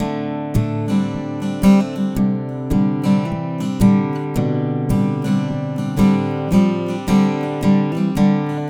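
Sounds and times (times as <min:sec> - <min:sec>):
acoustic guitar: 0:00.0 - 0:08.6.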